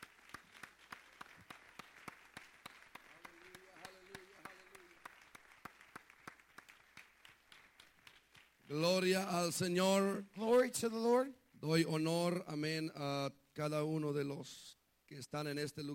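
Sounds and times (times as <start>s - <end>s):
loud hand clapping by audience: 0.0s - 10.7s
speech: 8.7s - 15.9s.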